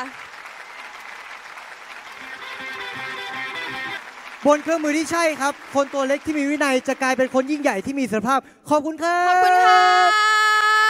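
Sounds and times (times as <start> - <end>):
audience applause: 0.0 - 8.1
speech: 4.4 - 10.2.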